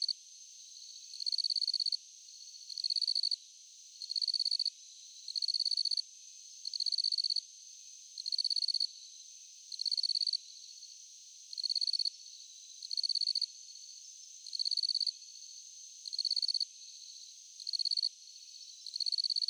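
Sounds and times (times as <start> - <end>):
cricket chirping at night: 0.0 - 19.4.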